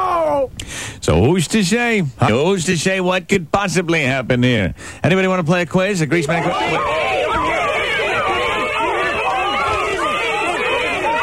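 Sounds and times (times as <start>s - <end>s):
speech: 0.9s - 7.5s
crowd screaming and yelling: 6.1s - 11.2s.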